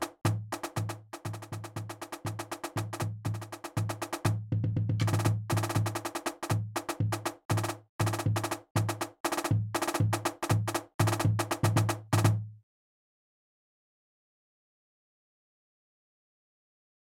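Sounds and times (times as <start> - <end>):
easy march music: 0.0 - 12.4.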